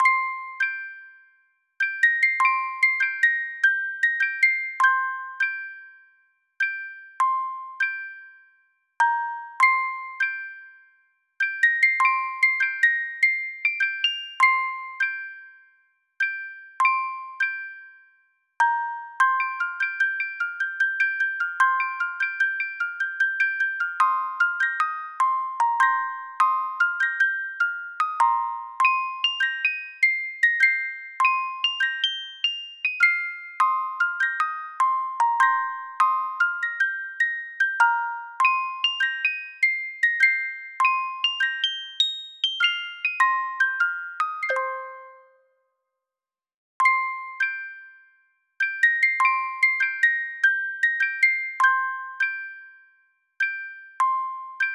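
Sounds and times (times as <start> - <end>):
music box: 0.0 - 45.6, 46.8 - 54.7.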